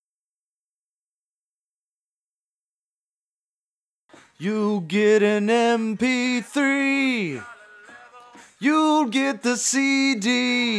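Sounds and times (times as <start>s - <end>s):
person singing: 4.2s - 10.7s.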